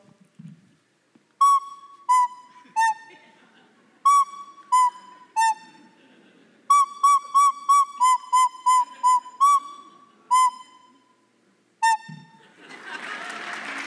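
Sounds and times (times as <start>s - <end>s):
recorder solo: 1.2s - 3.3s, 3.9s - 6.0s, 6.7s - 12.5s
laughter: 2.5s - 4.1s, 5.2s - 6.7s, 8.8s - 10.5s, 12.3s - 13.8s
applause: 12.7s - 13.8s.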